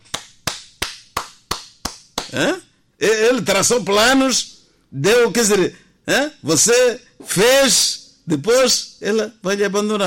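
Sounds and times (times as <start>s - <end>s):
hands clapping: 0.0s - 2.5s
speech: 2.3s - 10.0s.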